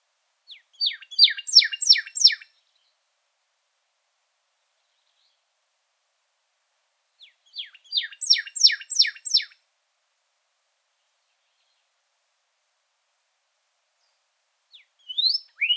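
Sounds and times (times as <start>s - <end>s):
pyrrhuloxia rising whistled call notes in Arizona: 0.5s - 2.5s, 7.2s - 9.5s, 14.7s - 15.7s.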